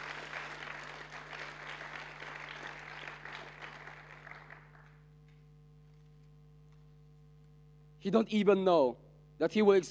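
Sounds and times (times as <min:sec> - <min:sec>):
audience clapping: 0:00.0 - 0:05.4
speech: 0:08.0 - 0:09.9.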